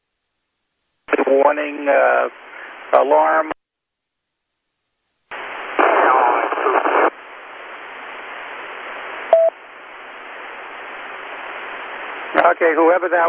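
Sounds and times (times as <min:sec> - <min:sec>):
noisy radio transmission static: 0:01.1 - 0:03.6, 0:05.3 - 0:13.2
speech: 0:01.3 - 0:03.5, 0:12.6 - 0:13.2.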